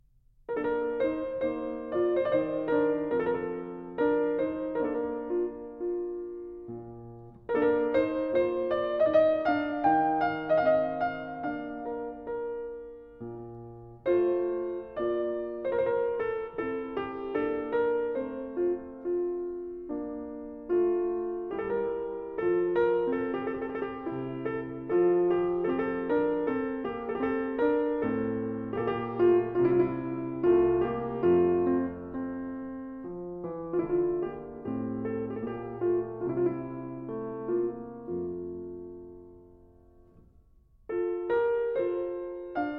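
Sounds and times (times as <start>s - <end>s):
classical arioso in B-flat major: 0.0s - 42.7s.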